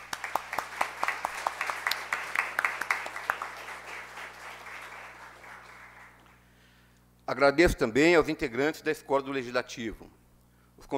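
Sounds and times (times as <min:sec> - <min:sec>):
audience applause: 0:00.0 - 0:06.4
speech: 0:07.3 - 0:10.2.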